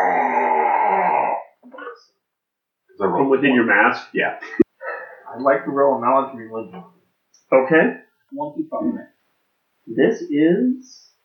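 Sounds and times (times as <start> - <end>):
person imitating a monster roar: 0.0 - 1.6
speech: 3.0 - 4.6, 5.3 - 9.1, 9.9 - 11.1.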